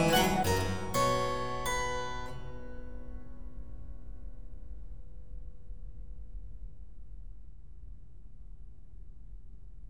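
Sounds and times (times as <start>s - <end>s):
classical minuet piece: 0.0s - 1.8s.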